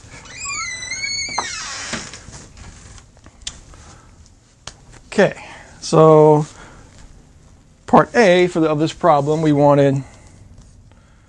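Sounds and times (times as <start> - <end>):
door creaking as it swings shut: 0.0 - 2.3
speech: 5.2 - 6.5, 7.9 - 10.1.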